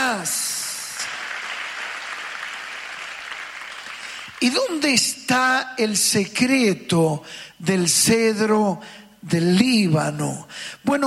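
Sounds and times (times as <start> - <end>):
crowd applause: 0.9 - 4.4
speech: 4.4 - 11.0.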